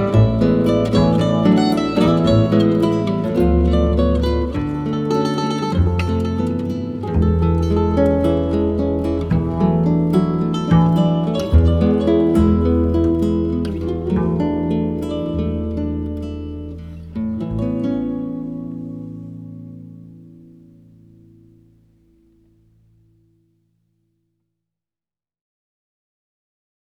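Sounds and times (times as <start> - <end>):
choro music: 0.0 - 20.4.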